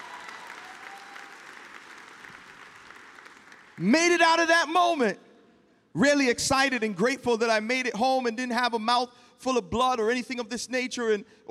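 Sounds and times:
audience clapping: 0:00.0 - 0:04.2
speech: 0:03.8 - 0:05.2, 0:06.0 - 0:11.5.

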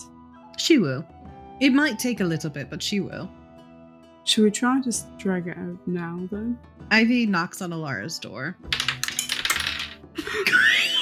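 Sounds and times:
speech: 0:00.6 - 0:03.4, 0:04.2 - 0:08.9, 0:10.3 - 0:10.7
caltrops dropping and clattering: 0:08.7 - 0:10.1
laughter: 0:10.2 - 0:11.0.

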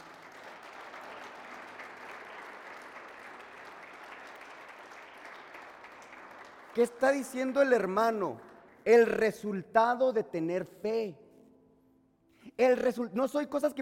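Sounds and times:
audience applause: 0:00.0 - 0:07.6
speech: 0:06.8 - 0:11.2, 0:12.6 - 0:13.8.

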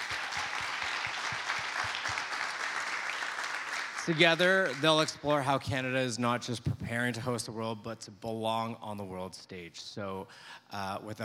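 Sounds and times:
audience applause: 0:00.0 - 0:05.2
speech: 0:04.1 - 0:11.2.

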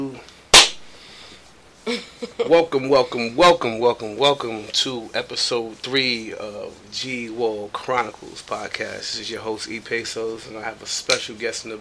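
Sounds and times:
hand clap: 0:00.6 - 0:00.8
speech: 0:02.4 - 0:11.7.

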